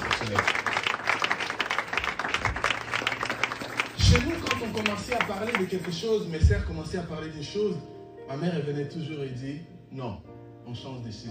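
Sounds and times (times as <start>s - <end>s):
audience applauding the mothers: 0.0s - 6.4s
speech: 0.2s - 0.6s, 4.1s - 11.2s.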